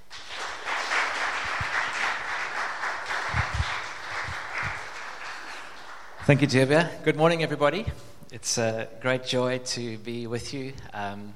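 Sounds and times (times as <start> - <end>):
audience applause welcoming a guest speaker to a church service: 0.0 - 6.7
speech: 6.3 - 11.3.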